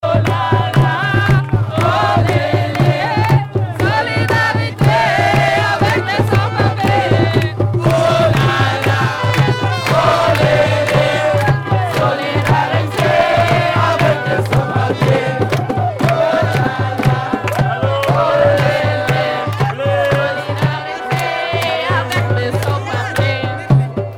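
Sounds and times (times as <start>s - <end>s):
singing at a march of solidarity with undocumented people: 0.0s - 24.1s.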